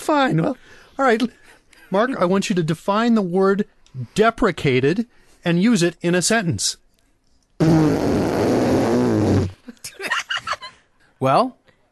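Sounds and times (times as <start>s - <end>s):
speech: 0.1s - 6.8s, 11.2s - 11.6s
raspberry blown with the mouth: 7.6s - 9.7s.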